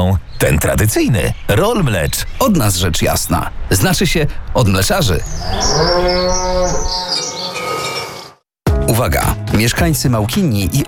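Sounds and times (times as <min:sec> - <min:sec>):
speech: 0:00.0 - 0:07.2, 0:09.0 - 0:10.8
birds chirping: 0:00.0 - 0:08.4
cow mooing: 0:05.3 - 0:08.4.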